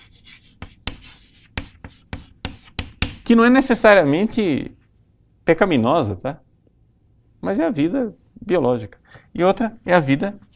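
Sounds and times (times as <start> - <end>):
writing on a board during a lecture: 0.0 - 3.3
speech: 3.3 - 4.8, 5.5 - 6.5, 7.4 - 10.5.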